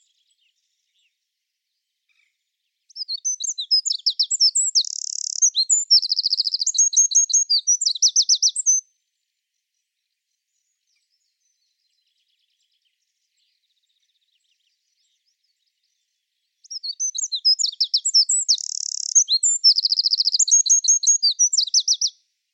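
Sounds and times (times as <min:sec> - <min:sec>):
bird singing: 0:00.0 - 0:22.5.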